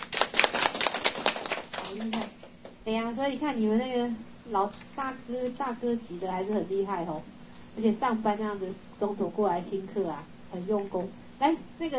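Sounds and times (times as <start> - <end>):
clapping by a class of students: 0.0 - 2.4
speech: 2.9 - 11.9.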